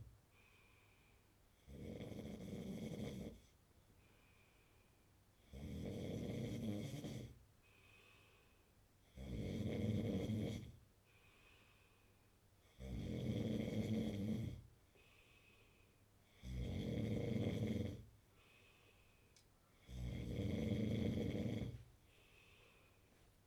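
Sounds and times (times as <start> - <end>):
man snoring: 1.7 - 3.4, 5.5 - 7.3, 9.2 - 10.7, 12.8 - 14.5, 16.4 - 18.0, 19.8 - 21.8.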